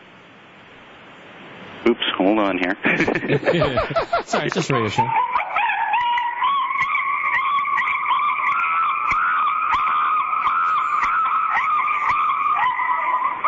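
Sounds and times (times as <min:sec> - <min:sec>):
speech: 0:01.8 - 0:05.2
laughter: 0:02.8 - 0:05.2
screaming chimpanzee cell phone ringtone: 0:05.0 - 0:13.4.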